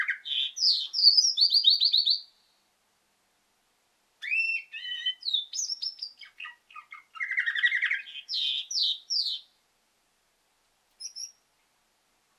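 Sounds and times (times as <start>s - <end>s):
female canary twittering with chirps and trills: 0.0s - 2.3s, 4.2s - 9.5s, 11.0s - 11.4s.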